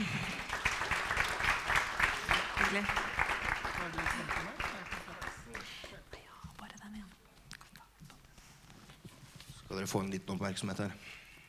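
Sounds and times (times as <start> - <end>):
audience clapping: 0.0 - 6.2
speech: 2.7 - 3.0, 9.8 - 11.2.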